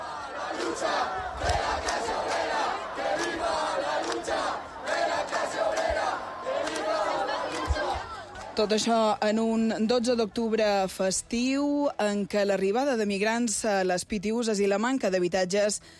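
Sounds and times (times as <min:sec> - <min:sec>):
protesters shouting from a camp: 0:00.0 - 0:08.6
speech: 0:08.6 - 0:15.9.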